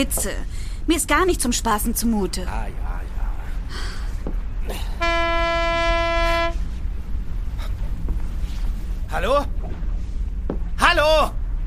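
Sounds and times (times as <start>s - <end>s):
speech: 0.0s - 2.9s, 9.2s - 9.6s, 10.9s - 11.4s
low rumbling wash: 0.0s - 11.6s
ship's fog horn blast: 4.7s - 6.9s.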